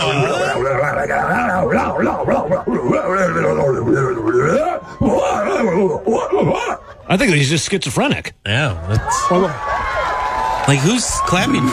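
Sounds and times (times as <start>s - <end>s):
person imitating a wolf's full moon howl: 0.0s - 6.8s
other voices howling: 0.0s - 7.0s, 8.9s - 11.7s
speech: 0.1s - 9.9s, 10.7s - 11.7s.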